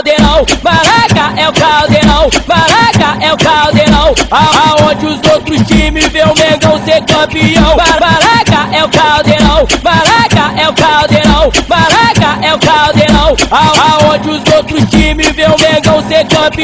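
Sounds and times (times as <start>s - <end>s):
maraca shaking: 0.1s - 16.6s.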